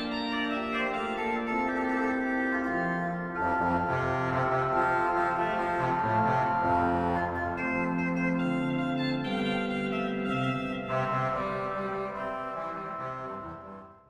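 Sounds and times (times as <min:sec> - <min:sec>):
pipe organ Trompette Cornet stop: 0:00.0 - 0:14.0.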